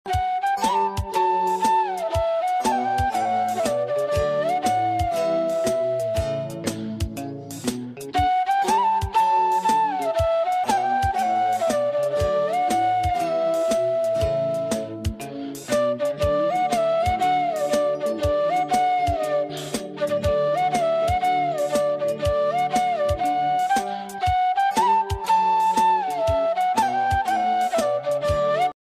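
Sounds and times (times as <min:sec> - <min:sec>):
flute ringtone music: 0:00.0 - 0:28.8.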